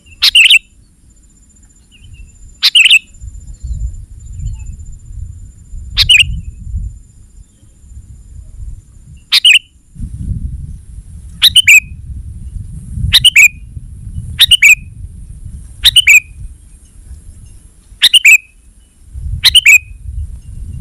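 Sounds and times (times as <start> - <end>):
sooty-headed bulbul calls: 0.0 - 4.8, 5.9 - 6.6, 9.1 - 9.8, 11.4 - 12.0, 13.1 - 13.7, 14.4 - 14.9, 15.8 - 20.0.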